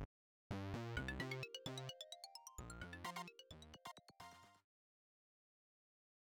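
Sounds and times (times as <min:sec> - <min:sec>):
robotic version of in-game theme music: 0:01.0 - 0:04.5.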